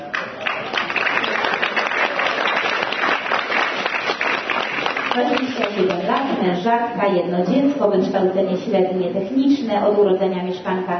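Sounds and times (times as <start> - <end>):
applause at a Polish community event: 0.0 - 6.4
speech: 5.2 - 10.9.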